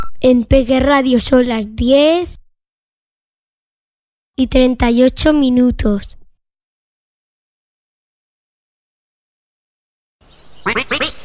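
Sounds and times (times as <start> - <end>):
speech: 0.2 - 2.4, 4.4 - 6.2, 10.6 - 11.1
person imitating duck quacks: 10.7 - 11.2.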